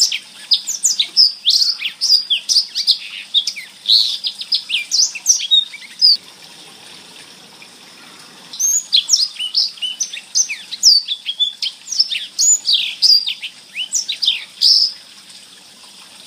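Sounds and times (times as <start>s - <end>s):
blackthroat bird singing: 0.0s - 6.2s, 8.6s - 15.0s.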